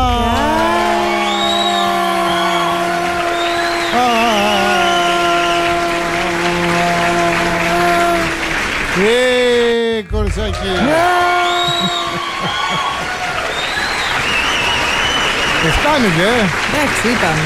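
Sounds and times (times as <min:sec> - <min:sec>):
sustained cheers and high whoops: 0:00.0 - 0:06.3, 0:10.8 - 0:16.0
laughter: 0:00.0 - 0:14.3
crowd applauding: 0:00.0 - 0:17.4
speech: 0:10.5 - 0:11.2, 0:15.9 - 0:17.4.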